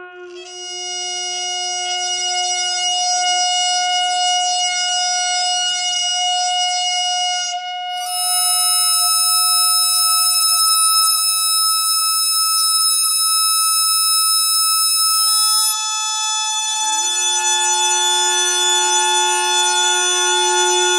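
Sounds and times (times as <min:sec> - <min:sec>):
bagpipe thread noise: 0:00.0 - 0:20.9.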